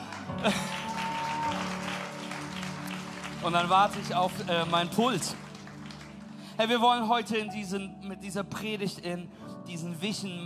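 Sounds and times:
crowd applauding: 0:00.0 - 0:07.4
speech: 0:00.4 - 0:00.8, 0:03.4 - 0:05.4, 0:06.6 - 0:10.4.

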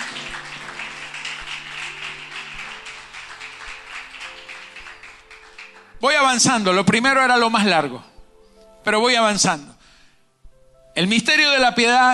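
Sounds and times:
audience applause: 0:00.0 - 0:06.0
low sustained musical tones: 0:00.0 - 0:11.2
speech: 0:06.0 - 0:08.1, 0:08.8 - 0:09.7, 0:11.0 - 0:12.1.

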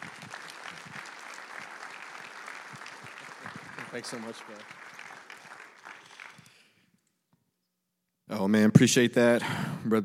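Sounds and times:
audience applause: 0:00.0 - 0:06.8
speech: 0:03.9 - 0:04.8, 0:08.4 - 0:10.0.

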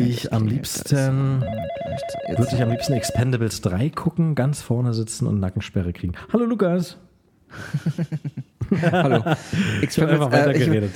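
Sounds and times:
speech: 0:00.1 - 0:10.9
telephone ringing with a short buzzy melodic tune: 0:01.4 - 0:03.4
laughter: 0:07.6 - 0:10.0.

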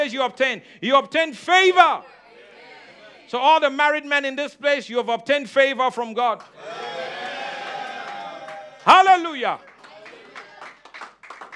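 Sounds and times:
speech: 0:00.0 - 0:02.2, 0:03.3 - 0:06.9, 0:08.8 - 0:09.7
audience clapping: 0:06.4 - 0:11.5.

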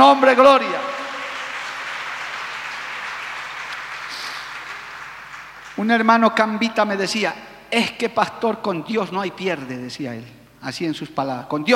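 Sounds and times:
speech: 0:00.1 - 0:00.9, 0:05.8 - 0:11.7
audience applause: 0:00.6 - 0:05.9.

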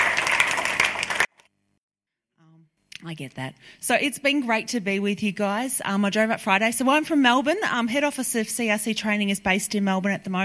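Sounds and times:
church congregation applause welcoming a pastor: 0:00.0 - 0:01.3
speech: 0:03.0 - 0:10.4.

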